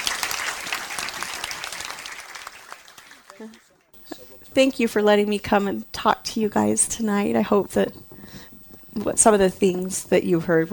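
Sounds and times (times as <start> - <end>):
audience applause: 0.0 - 4.4
speech: 3.4 - 8.1, 9.0 - 10.7.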